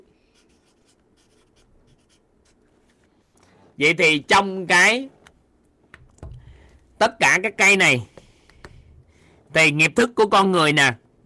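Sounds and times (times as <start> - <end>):
pen strokes writing an abbreviation by hand: 0.4 - 2.6
speech: 3.8 - 5.2, 7.0 - 8.1, 9.5 - 11.0.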